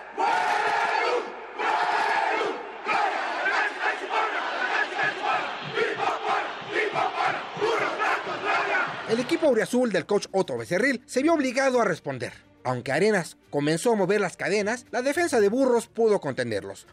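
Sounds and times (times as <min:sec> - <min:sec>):
large crowd of football fans cheering and chanting: 0:00.0 - 0:10.1
speech: 0:09.1 - 0:16.9.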